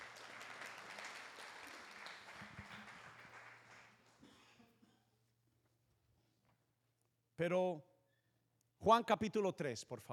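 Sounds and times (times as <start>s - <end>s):
crowd applauding: 0.0s - 4.2s
speech: 7.4s - 7.9s, 8.8s - 10.1s.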